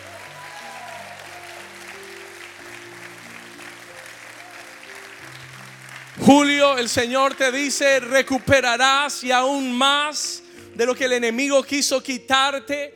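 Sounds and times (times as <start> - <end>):
audience applause: 0.0 - 9.2
speech: 6.3 - 12.9.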